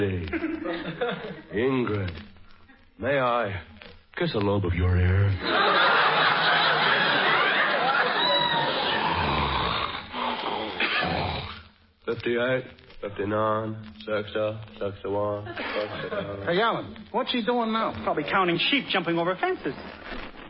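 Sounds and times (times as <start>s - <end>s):
speech: 0.0s - 2.3s, 3.0s - 6.6s, 12.2s - 20.2s
laughter: 0.3s - 1.6s, 5.4s - 11.1s, 15.2s - 17.0s
man snoring: 8.9s - 11.6s.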